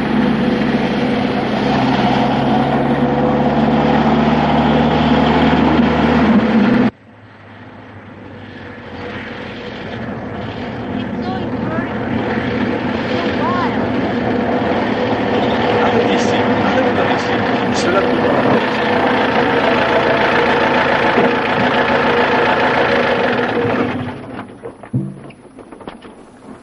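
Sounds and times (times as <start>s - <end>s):
jeep engine speeding along a dusty dirt road: 0.0s - 26.6s.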